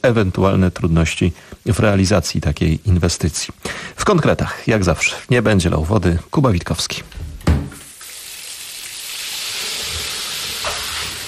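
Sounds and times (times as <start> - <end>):
speech: 0.0 - 7.2
water running from a tap: 7.7 - 11.2.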